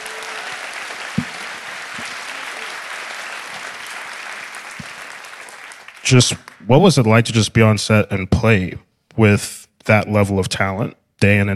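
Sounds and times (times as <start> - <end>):
audience applause: 0.0 - 6.7
speech: 6.1 - 11.5.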